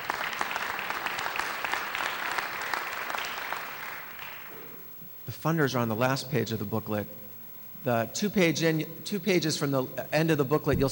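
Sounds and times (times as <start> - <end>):
crowd clapping: 0.0 - 4.5
speech: 5.3 - 7.2, 7.8 - 10.9.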